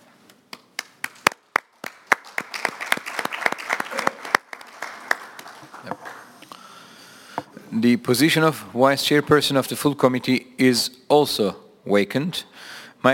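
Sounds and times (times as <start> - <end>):
committee applause electing chair by acclamation: 0.5 - 6.4
speech: 7.8 - 13.1.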